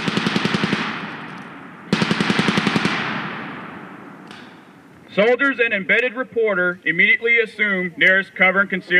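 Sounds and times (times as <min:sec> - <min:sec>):
automatic gunfire during a military training exercise: 0:00.0 - 0:04.6
speech: 0:05.2 - 0:08.9.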